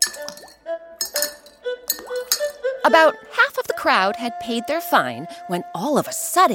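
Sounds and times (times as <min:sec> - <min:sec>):
coins dropped into a glass jar: 0:00.0 - 0:02.6
speech: 0:02.8 - 0:06.5.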